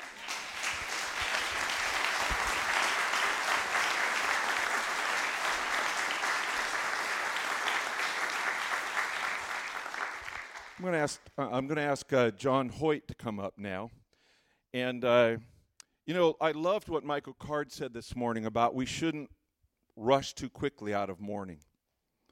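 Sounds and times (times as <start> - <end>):
audience applause: 0.0 - 11.0
speech: 10.8 - 14.0, 14.8 - 15.5, 16.1 - 19.4, 20.0 - 21.7.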